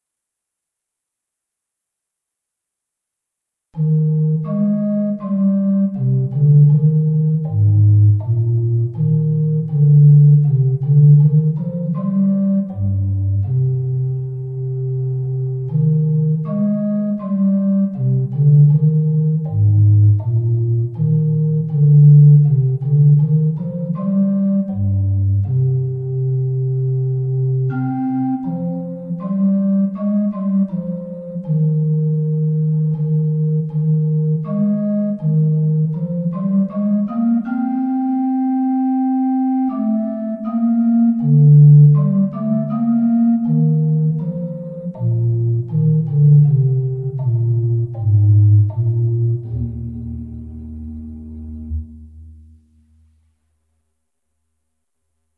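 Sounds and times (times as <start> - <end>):
instrumental music: 3.6 - 55.3.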